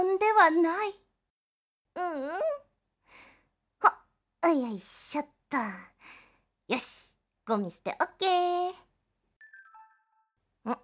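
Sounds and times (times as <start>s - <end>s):
speech: 0.0s - 1.0s, 2.0s - 2.6s, 3.8s - 8.8s, 10.6s - 10.8s
mobile phone message chime with bright descending tones: 9.4s - 10.3s.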